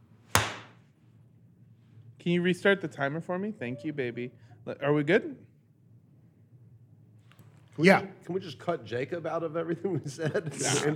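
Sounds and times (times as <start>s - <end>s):
hand clap for recording sync: 0.4s - 0.8s
speech: 2.2s - 5.5s, 7.8s - 10.9s.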